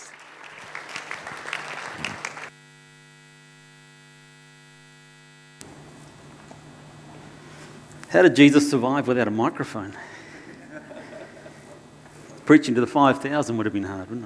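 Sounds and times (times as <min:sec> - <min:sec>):
audience applause at a morning church gathering: 0:00.0 - 0:02.6
electrical mains hum: 0:00.1 - 0:14.2
speech: 0:08.1 - 0:10.1, 0:12.5 - 0:14.2
laughter: 0:10.0 - 0:11.9.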